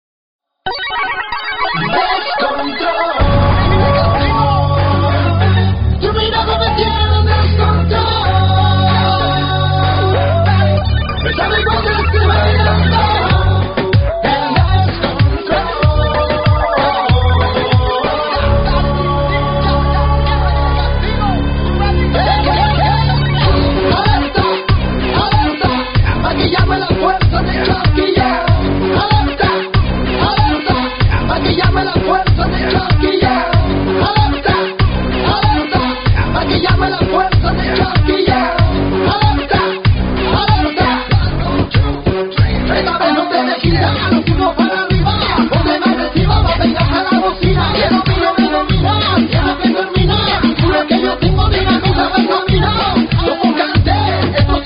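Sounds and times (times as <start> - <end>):
reggaeton funk fitness beat: 1.6 - 20.5, 21.1 - 54.6.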